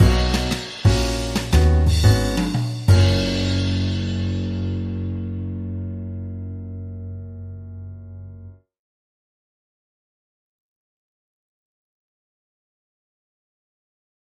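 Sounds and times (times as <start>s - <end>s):
laid back jazz music stinger: 0.0s - 8.5s.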